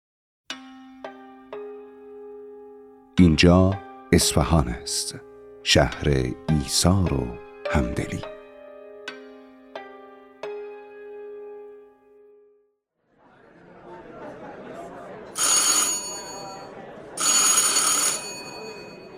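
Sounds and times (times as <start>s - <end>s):
speech: 3.2s - 8.3s
laughter: 13.2s - 19.1s
doorbell ringing: 15.4s - 19.1s.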